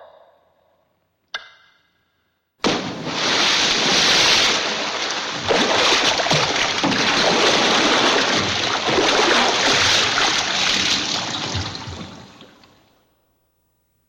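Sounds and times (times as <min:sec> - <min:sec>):
water drips: 0:02.7 - 0:12.8.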